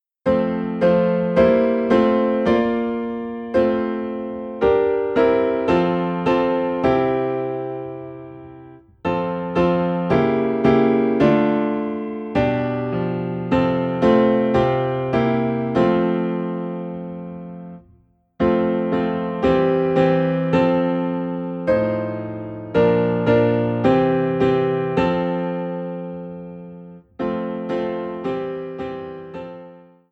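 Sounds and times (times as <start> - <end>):
piano playing in F: 0.2 - 30.1.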